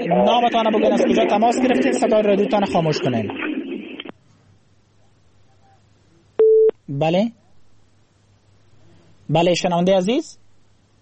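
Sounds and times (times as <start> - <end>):
speech: 0.0 - 3.5, 6.9 - 7.4, 9.3 - 10.4
telephone tone after a caller's line drops: 6.4 - 6.8.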